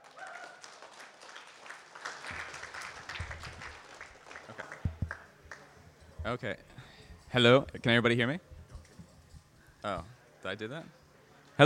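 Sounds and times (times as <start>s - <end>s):
audience applause at an open mic comedy show: 0.0s - 5.6s
speech: 6.3s - 8.5s, 9.8s - 11.0s.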